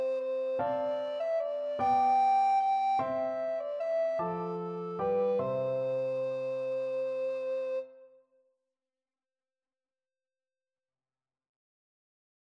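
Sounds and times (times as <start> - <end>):
alto recorder melody: 0.0 - 8.1.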